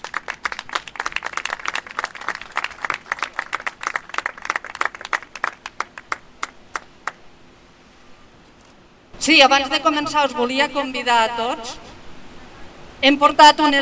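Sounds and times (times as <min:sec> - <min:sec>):
audience applause: 0:00.0 - 0:07.2
speech: 0:09.2 - 0:11.8, 0:13.0 - 0:13.8.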